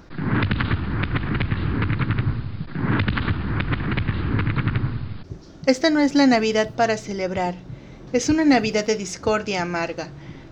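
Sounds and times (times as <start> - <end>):
fireworks exploding: 0.0 - 9.6
speech: 5.7 - 10.2.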